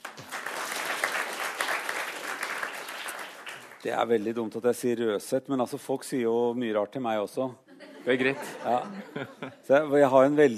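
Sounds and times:
audience applause: 0:00.0 - 0:04.0
speech: 0:03.8 - 0:10.5
laughter: 0:07.7 - 0:09.7.

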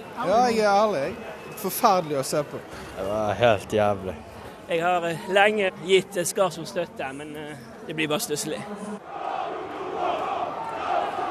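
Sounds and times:
speech: 0:00.2 - 0:09.2
football crowd shouting angry chants: 0:09.0 - 0:11.3.

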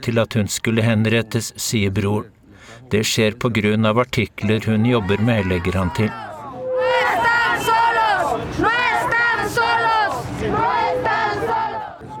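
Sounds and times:
speech: 0:00.0 - 0:06.3
demonstrators shouting at a protest march in Mexico City: 0:04.6 - 0:12.1.

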